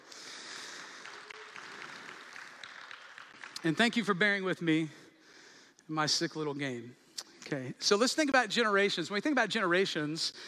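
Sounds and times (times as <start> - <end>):
audience applause: 0.0 - 4.4
speech: 3.6 - 5.0, 5.9 - 10.4.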